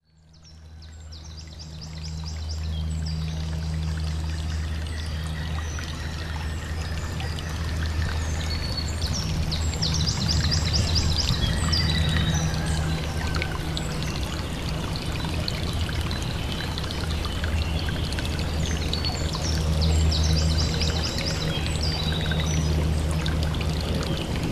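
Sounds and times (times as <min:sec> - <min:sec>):
stream flowing: 0:00.3 - 0:24.4.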